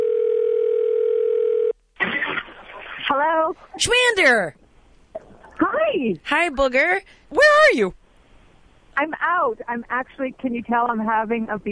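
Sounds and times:
telephone dial tone while placing a call: 0.0 - 1.8
brief burst of noise: 2.0 - 3.3
speech: 3.2 - 4.6, 5.8 - 8.0, 9.0 - 11.7.

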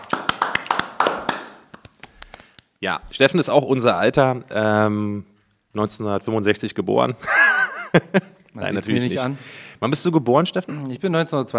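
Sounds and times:
light applause from a few people: 0.0 - 2.2
speech: 2.8 - 11.5
laughter: 7.2 - 9.4.

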